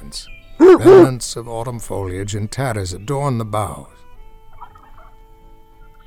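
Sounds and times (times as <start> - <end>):
speech: 0.1 - 4.0
wild turkey gobbling: 0.6 - 1.1.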